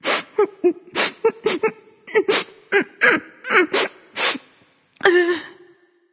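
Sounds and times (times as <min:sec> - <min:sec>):
person crying boo hoo: 0:00.0 - 0:03.9, 0:05.0 - 0:05.6.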